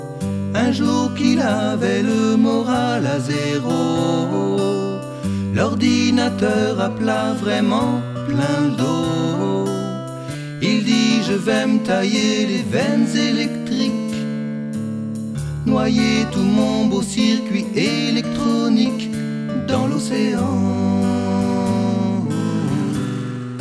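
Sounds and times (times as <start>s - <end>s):
vocal ensemble singing variety jazz: 0.2s - 14.3s, 15.4s - 23.4s.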